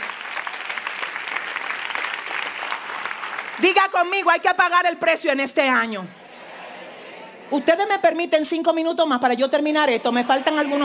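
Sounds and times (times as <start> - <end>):
audience applause: 0.0 - 3.7
speech: 3.6 - 6.2, 7.5 - 10.8.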